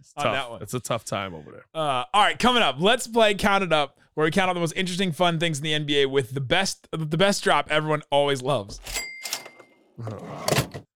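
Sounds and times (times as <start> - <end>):
speech: 0.0 - 9.1, 10.0 - 10.8
drawer shutting: 9.4 - 10.9.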